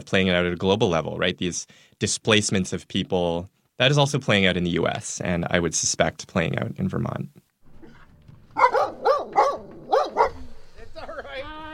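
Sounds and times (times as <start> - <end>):
speech: 0.0 - 7.4
puppy barking: 8.6 - 10.5.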